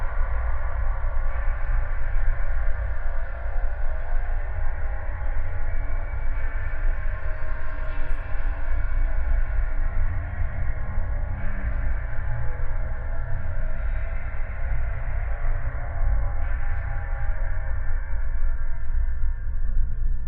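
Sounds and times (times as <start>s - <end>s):
ambient soundscape: 0.0s - 20.2s.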